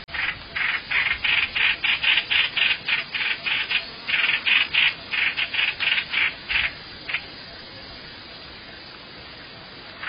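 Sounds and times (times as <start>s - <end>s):
bird rasping calls: 0.1s - 7.3s.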